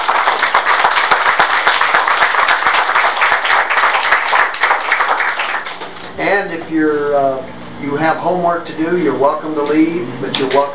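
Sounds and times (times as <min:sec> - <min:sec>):
applause: 0:00.0 - 0:06.1
speech: 0:06.7 - 0:10.7.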